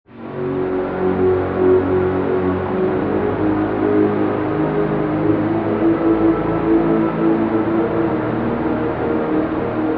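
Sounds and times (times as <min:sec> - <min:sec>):
synth pad: 0:00.1 - 0:09.9.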